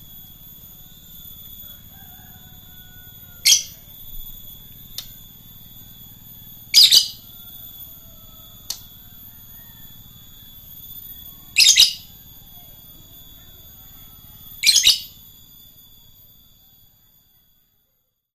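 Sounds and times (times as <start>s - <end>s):
lovebird singing in the ngekek style: 3.4s - 3.9s, 6.7s - 7.6s, 10.8s - 12.2s, 14.4s - 15.2s.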